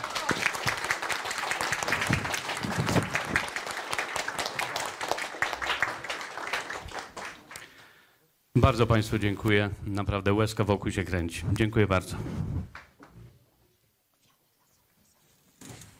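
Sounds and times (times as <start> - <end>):
audience clapping: 0.0 - 8.0
speech: 8.6 - 12.6.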